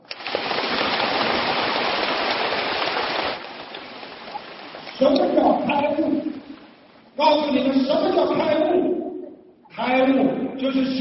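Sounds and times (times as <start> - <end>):
audience applause: 0.0 - 5.3
speech: 5.0 - 6.2, 7.2 - 8.9, 9.8 - 10.9.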